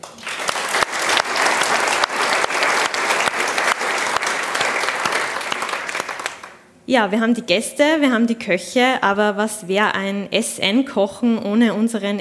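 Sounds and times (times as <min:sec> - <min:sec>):
audience applause: 0:00.0 - 0:06.6
speech: 0:06.9 - 0:12.1.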